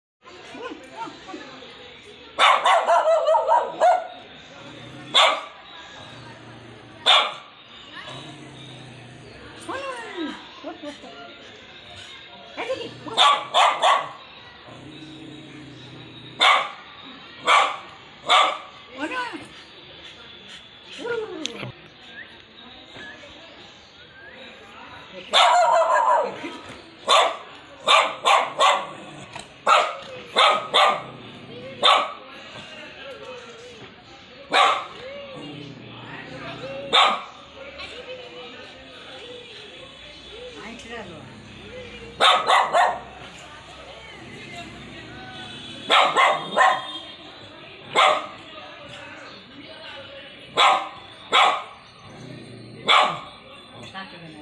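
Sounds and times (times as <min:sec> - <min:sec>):
white spitz barking loudly: 0:02.4 - 0:04.2, 0:05.1 - 0:05.6, 0:07.0 - 0:07.4, 0:13.1 - 0:14.2, 0:16.4 - 0:16.8, 0:17.5 - 0:18.7, 0:25.3 - 0:26.4, 0:27.1 - 0:29.0, 0:29.6 - 0:31.2, 0:31.8 - 0:32.2, 0:34.5 - 0:34.9, 0:36.9 - 0:37.3, 0:42.2 - 0:43.1, 0:45.8 - 0:47.0, 0:47.9 - 0:48.4, 0:50.6 - 0:51.8, 0:52.8 - 0:53.3.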